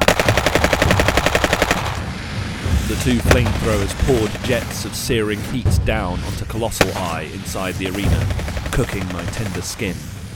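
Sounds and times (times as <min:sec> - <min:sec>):
machine gun fire: 0:00.0 - 0:02.0, 0:07.9 - 0:09.8
speech: 0:02.9 - 0:10.2.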